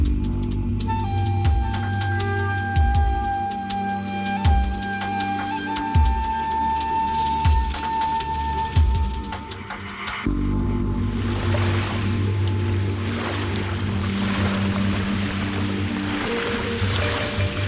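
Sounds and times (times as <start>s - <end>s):
waves on a beach: 0.0s - 10.3s, 10.9s - 17.6s
wind: 0.0s - 17.6s
low droning engine-like hum: 10.3s - 16.1s.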